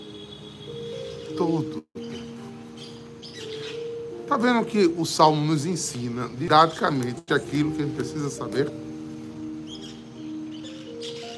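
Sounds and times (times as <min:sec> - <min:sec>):
macaws calling: 0:01.0 - 0:04.1, 0:09.6 - 0:11.3
speech: 0:01.4 - 0:02.0, 0:04.3 - 0:08.9.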